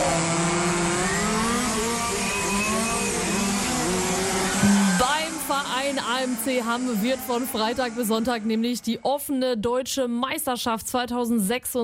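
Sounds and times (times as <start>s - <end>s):
radio-controlled model race cars revving: 0.0s - 9.2s
speech: 6.2s - 11.8s.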